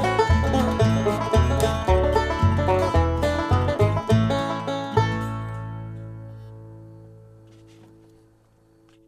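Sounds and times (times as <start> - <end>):
banjo: 0.0 - 6.3.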